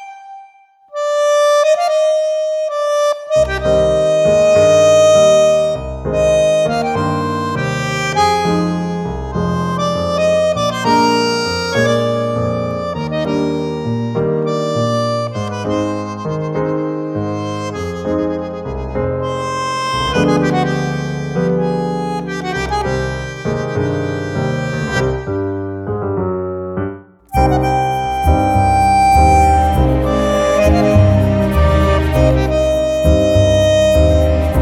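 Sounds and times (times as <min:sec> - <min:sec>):
tango music: 0:00.9 - 0:34.5.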